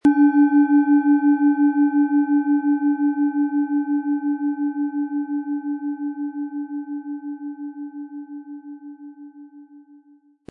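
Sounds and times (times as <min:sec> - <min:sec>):
planet singing bowl: 0:00.0 - 0:10.4.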